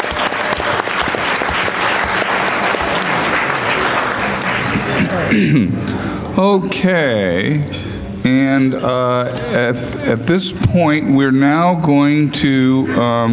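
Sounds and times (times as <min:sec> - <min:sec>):
round of applause: 0:00.0 - 0:05.3
speech: 0:05.4 - 0:13.3.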